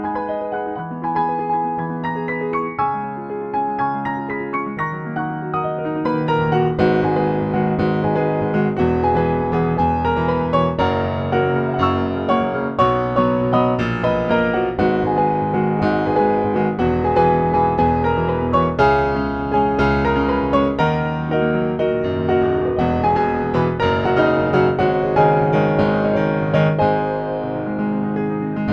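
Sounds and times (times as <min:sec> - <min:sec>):
fast natural piano playing: 0:00.0 - 0:28.7.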